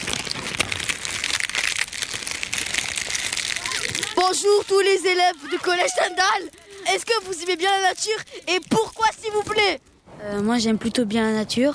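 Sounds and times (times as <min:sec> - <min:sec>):
dead tree leaves crunching: 0:00.0 - 0:10.0
speech: 0:04.3 - 0:11.7.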